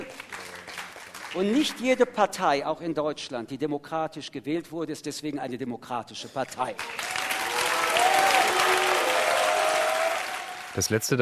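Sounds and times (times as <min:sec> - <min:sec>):
audience applause: 0:00.0 - 0:01.8, 0:06.8 - 0:11.2
speech: 0:01.3 - 0:07.1, 0:10.8 - 0:11.2
audience cheering: 0:06.8 - 0:11.0.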